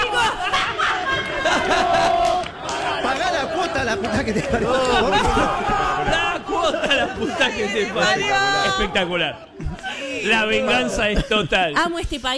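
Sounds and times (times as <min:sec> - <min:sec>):
football fans shouting: 0:00.0 - 0:11.2
football fans chanting: 0:00.0 - 0:11.3
laughter: 0:00.0 - 0:11.8
speech: 0:04.0 - 0:09.6, 0:10.2 - 0:12.3.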